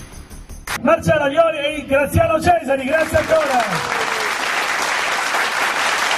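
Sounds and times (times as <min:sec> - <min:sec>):
speech: 0:00.9 - 0:04.0
studio audience applauding at a game show: 0:02.8 - 0:06.1.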